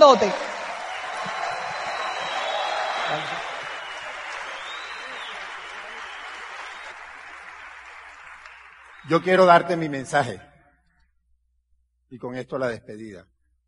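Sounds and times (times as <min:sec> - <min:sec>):
speech: 0:00.0 - 0:00.5, 0:03.1 - 0:03.5, 0:09.1 - 0:10.5, 0:12.1 - 0:13.3
audience applause: 0:00.0 - 0:09.6.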